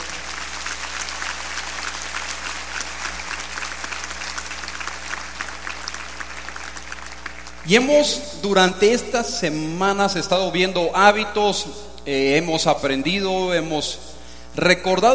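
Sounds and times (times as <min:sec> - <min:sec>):
audience applause: 0:00.0 - 0:07.6
speech: 0:07.7 - 0:15.1.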